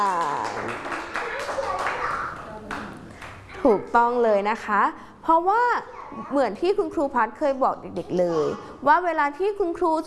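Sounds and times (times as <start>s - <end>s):
speech: 0.0s - 0.2s, 3.6s - 10.0s
children clapping: 0.0s - 3.6s
high-pitched young voices chattering: 1.0s - 3.7s, 5.8s - 6.8s.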